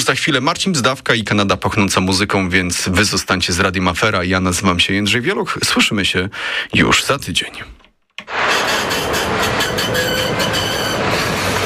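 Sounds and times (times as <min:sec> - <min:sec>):
speech: 0:00.1 - 0:07.8
tram departing: 0:08.3 - 0:11.6.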